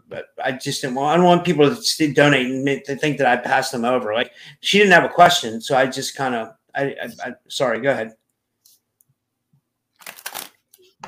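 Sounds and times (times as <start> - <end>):
speech: 0.1 - 8.2
shuffling tarot cards: 10.0 - 10.9.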